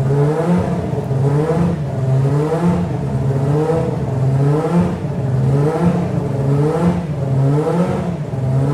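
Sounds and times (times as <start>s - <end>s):
Formula 1 car engine revving at about 7,800 to 8,000 rpm: 0.0s - 8.7s.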